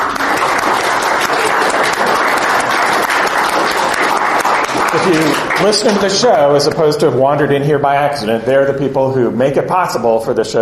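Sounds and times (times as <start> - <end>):
audience applause: 0.0 - 6.8
speech: 5.1 - 10.6.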